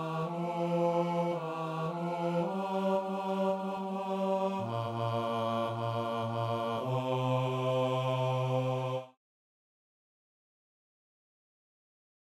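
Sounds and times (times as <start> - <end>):
male chorus singing: 0.0 - 9.2.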